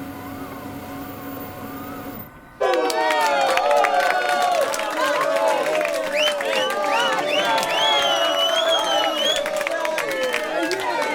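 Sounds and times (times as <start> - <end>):
applause and cheering sound effect: 2.6 - 11.1.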